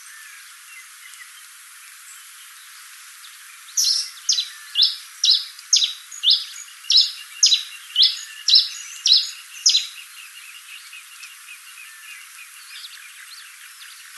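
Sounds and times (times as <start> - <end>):
Coryphospingus pileatus calling: 3.8 - 10.1.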